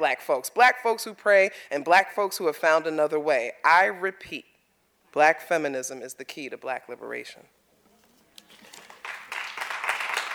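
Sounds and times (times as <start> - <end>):
speech: 0.0 - 4.5, 5.2 - 7.6
audience clapping: 8.5 - 10.3.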